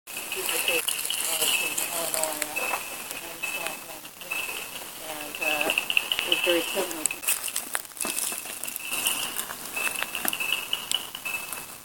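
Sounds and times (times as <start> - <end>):
ornate chorus frog: 0.1 - 11.8.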